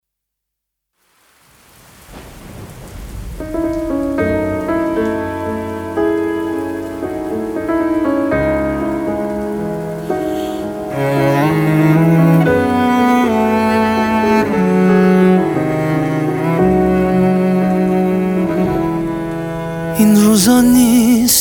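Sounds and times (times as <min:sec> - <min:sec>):
piano music: 0:03.2 - 0:21.4.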